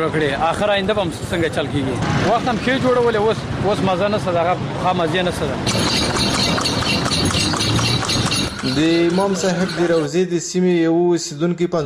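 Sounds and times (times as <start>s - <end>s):
speech: 0.0s - 7.7s, 8.6s - 11.8s
horse pulling a cart clip-clopping: 5.6s - 10.1s.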